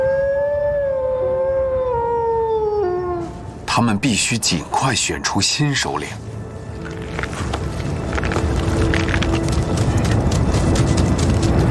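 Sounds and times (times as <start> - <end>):
Arctic wolves howling: 0.0 - 3.5
low rumbling background: 0.0 - 11.6
speech: 3.8 - 6.4.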